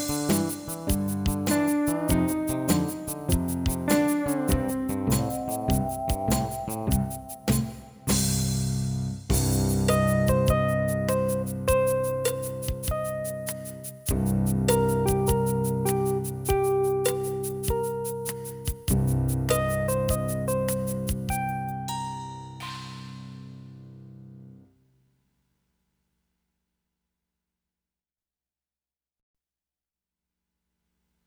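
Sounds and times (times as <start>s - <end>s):
blues music: 0.0s - 23.8s.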